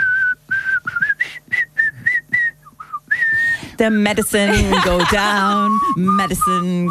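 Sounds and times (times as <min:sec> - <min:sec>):
person whistling a movie tune: 0:00.0 - 0:03.6, 0:05.4 - 0:06.8
speech: 0:03.8 - 0:06.8
laughter: 0:04.2 - 0:05.8.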